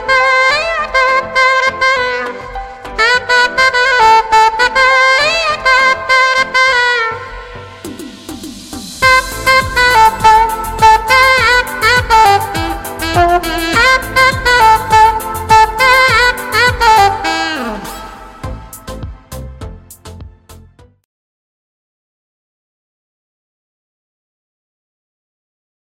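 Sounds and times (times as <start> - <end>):
saxophone: 0.0 - 20.3.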